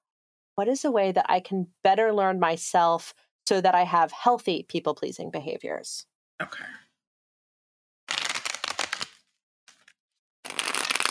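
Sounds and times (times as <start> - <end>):
speech: 0.6 - 6.8
tarot cards being shuffled: 8.1 - 11.0.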